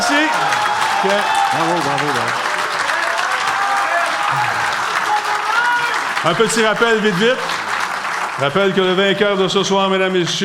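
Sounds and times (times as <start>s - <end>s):
audience applause: 0.0s - 10.4s
speech: 1.0s - 2.4s, 6.2s - 7.6s, 8.4s - 10.4s.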